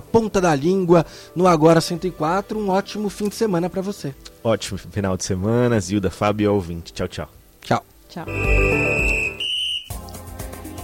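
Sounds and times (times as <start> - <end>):
speech: 0.1 - 9.1
high-pitched electronic beep on a morning radio show: 8.3 - 9.9.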